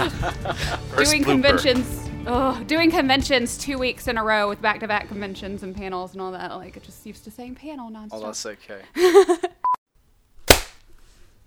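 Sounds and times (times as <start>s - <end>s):
laughter: 0.0s - 1.6s, 9.0s - 9.6s
speech: 0.0s - 9.5s
single hand clap: 10.5s - 10.8s.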